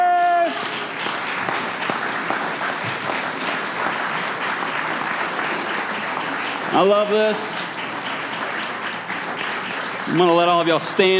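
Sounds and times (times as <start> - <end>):
audience clapping and cheering: 0.0 - 11.1
speech: 6.7 - 7.5, 10.1 - 11.1.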